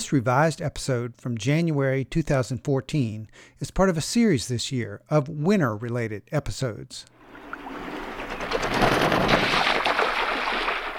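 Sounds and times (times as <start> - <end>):
speech: 0.1 - 7.2
large duck splashing down onto water: 7.6 - 10.9.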